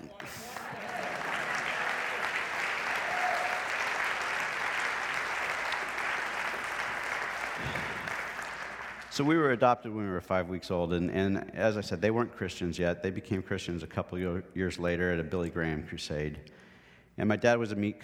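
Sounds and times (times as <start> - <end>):
audience applauding: 0.0 - 9.3
speech: 9.2 - 18.0.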